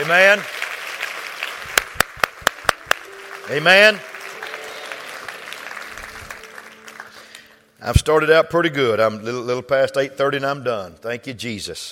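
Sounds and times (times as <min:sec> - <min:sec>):
speech: 0:00.0 - 0:00.6, 0:03.5 - 0:04.1, 0:07.8 - 0:11.8
audience clapping hands: 0:00.0 - 0:07.7.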